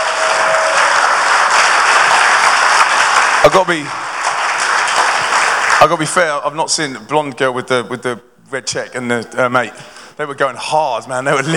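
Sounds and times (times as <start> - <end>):
audience applause for kids: 0.0 - 6.2
speech: 3.5 - 4.1, 5.8 - 11.5.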